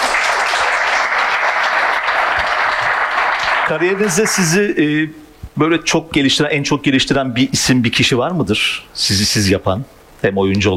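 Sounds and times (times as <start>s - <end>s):
audience applause: 0.0s - 4.6s
speech: 3.7s - 10.7s.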